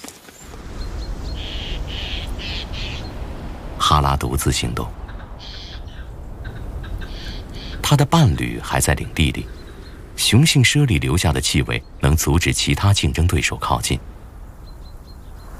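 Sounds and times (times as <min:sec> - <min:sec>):
harsh rasping magpie calls: 0:01.4 - 0:03.1, 0:05.1 - 0:07.8
man narrating: 0:03.8 - 0:05.0, 0:07.8 - 0:09.6, 0:10.2 - 0:14.0
speech: 0:04.0 - 0:05.0, 0:07.9 - 0:09.6, 0:10.2 - 0:14.1.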